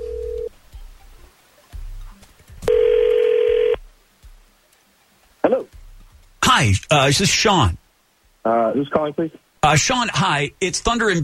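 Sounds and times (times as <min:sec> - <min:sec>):
telephone call ringing out: 0:02.7 - 0:03.8
speech: 0:05.5 - 0:05.8, 0:06.6 - 0:07.8, 0:08.4 - 0:11.2.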